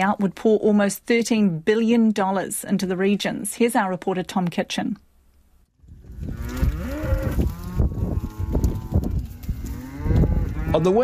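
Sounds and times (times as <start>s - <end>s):
speech: 0.0s - 5.1s, 10.8s - 11.0s
dairy cows mooing: 6.2s - 11.0s.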